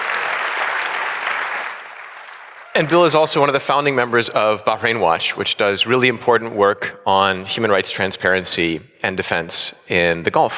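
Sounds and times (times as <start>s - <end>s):
audience applause at a talk greeting a speaker: 0.0s - 4.2s
speech: 2.8s - 10.5s.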